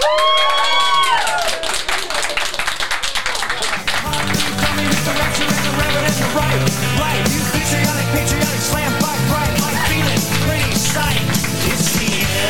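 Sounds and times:
crowd whoops and whistles: 0:00.0 - 0:01.8
crowd applause: 0:00.0 - 0:12.4.

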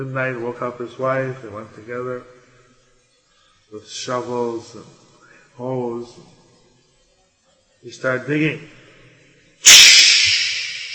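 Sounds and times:
speech: 0:00.0 - 0:02.4, 0:03.7 - 0:05.0, 0:05.6 - 0:06.4, 0:07.8 - 0:08.8, 0:09.6 - 0:09.8
snake hissing: 0:09.6 - 0:10.9.

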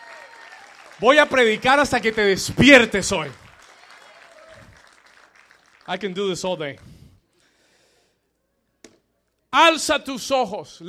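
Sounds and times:
audience applauding: 0:00.0 - 0:06.9
speech: 0:01.0 - 0:03.4, 0:05.9 - 0:07.0, 0:09.5 - 0:10.8.

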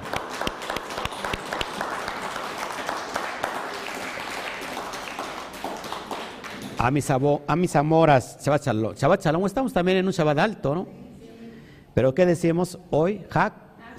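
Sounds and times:
applause: 0:00.0 - 0:07.2
speech: 0:06.8 - 0:11.0, 0:12.0 - 0:13.9.

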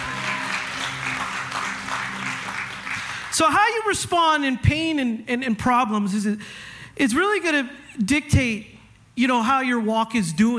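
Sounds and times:
audience clapping: 0:00.0 - 0:03.9
speech: 0:03.4 - 0:10.5.

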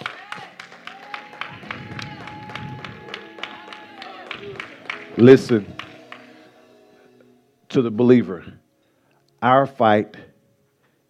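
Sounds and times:
audience hand clapping in praise: 0:00.0 - 0:06.5
speech: 0:05.2 - 0:05.8, 0:07.8 - 0:08.6, 0:09.4 - 0:10.3.

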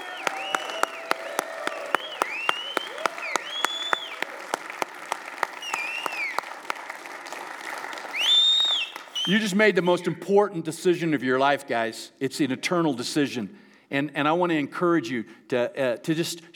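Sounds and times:
whistles: 0:00.0 - 0:04.3, 0:05.5 - 0:06.6, 0:08.0 - 0:09.6
shouted cheers: 0:00.0 - 0:09.2
crowd applauding: 0:00.0 - 0:09.5
speech: 0:09.3 - 0:16.5.

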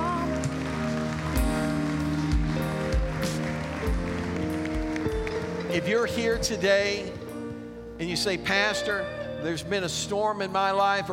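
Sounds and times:
crowd clapping: 0:00.0 - 0:06.6
speech: 0:05.8 - 0:07.2, 0:08.0 - 0:11.1.

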